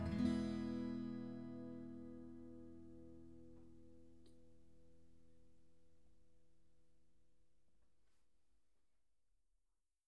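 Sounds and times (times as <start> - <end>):
guitar: 0.0 - 5.8.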